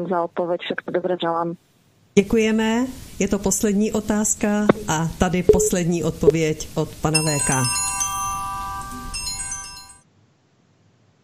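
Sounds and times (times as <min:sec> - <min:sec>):
speech: 0:00.0 - 0:08.0
small bell ringing: 0:07.2 - 0:10.0.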